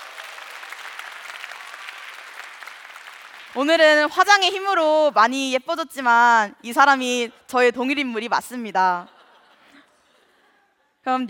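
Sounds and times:
audience clapping: 0.0s - 4.1s
speech: 3.6s - 9.2s, 11.0s - 11.2s
laughter: 8.9s - 10.8s.

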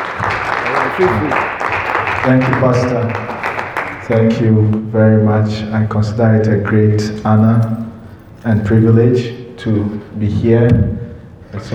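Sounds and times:
audience clapping: 0.0s - 4.8s
speech: 1.0s - 1.6s, 2.2s - 3.4s, 4.1s - 11.7s.

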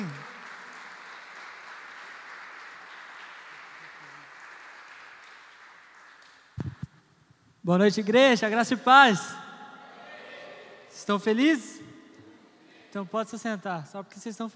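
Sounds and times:
audience applauding: 0.0s - 6.8s
speech: 7.7s - 9.4s, 11.1s - 11.9s, 12.9s - 14.5s.

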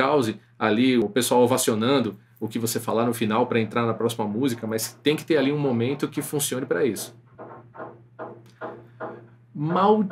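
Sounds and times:
speech: 0.0s - 7.2s, 9.6s - 10.1s
low steady hum: 0.0s - 10.1s
someone banging on the wall from a neighbouring apartment: 7.2s - 10.1s.

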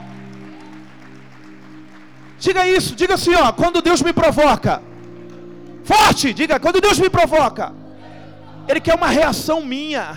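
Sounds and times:
audience applauding: 0.0s - 7.0s
low sustained musical chord: 0.0s - 10.1s
speech: 2.4s - 4.9s, 5.9s - 7.8s, 8.7s - 10.1s.

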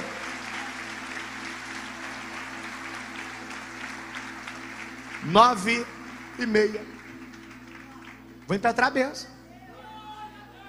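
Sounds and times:
church audience applauding: 0.0s - 8.8s
speech: 5.2s - 7.0s, 8.5s - 9.3s.

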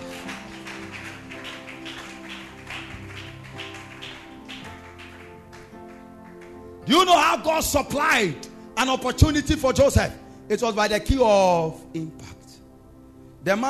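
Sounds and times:
crowd clapping hands: 0.0s - 7.0s
speech: 6.9s - 12.2s, 13.4s - 13.6s.

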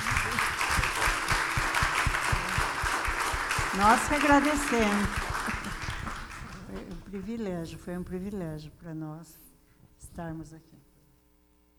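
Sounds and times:
audience applause: 0.0s - 7.0s
speech: 3.8s - 5.2s, 7.1s - 9.4s, 10.2s - 10.8s.

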